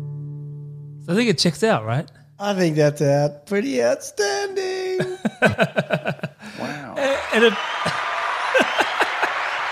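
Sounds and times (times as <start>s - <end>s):
speech: 1.0s - 4.3s, 5.0s - 8.0s
laughter: 4.7s - 9.6s
soundboard cheering crowd effect: 6.6s - 9.6s.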